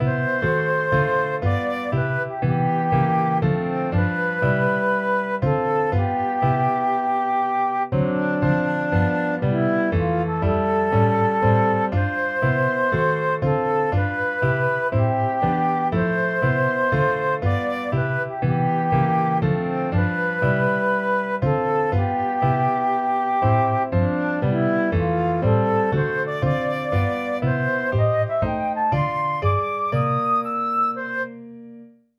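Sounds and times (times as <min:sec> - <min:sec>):
jazz standard: 0:00.0 - 0:31.4.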